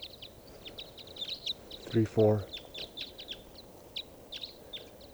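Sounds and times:
flock of type 5 bird calls: 0.2s - 5.1s
speech: 1.9s - 2.5s.

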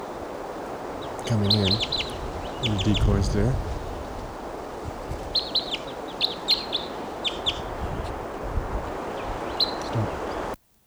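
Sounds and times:
wild bird calling: 0.0s - 10.6s
speech: 1.2s - 3.7s.

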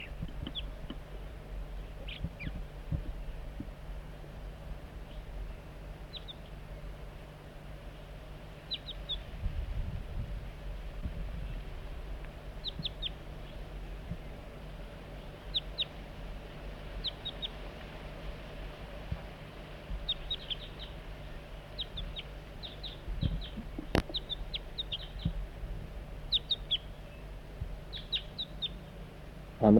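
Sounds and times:
juvenile crossbill chip calls: 0.0s - 0.8s, 1.9s - 2.6s, 6.1s - 6.6s, 8.6s - 9.3s, 12.6s - 13.6s, 15.2s - 16.0s, 17.0s - 17.6s, 20.0s - 25.4s, 26.2s - 29.0s
steady low rumble and hiss: 0.0s - 29.7s.

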